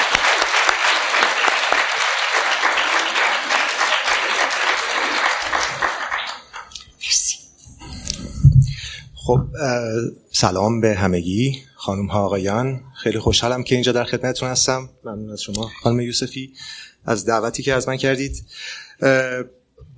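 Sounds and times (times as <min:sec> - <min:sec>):
audience applause: 0:00.0 - 0:06.7
speech: 0:09.3 - 0:19.9.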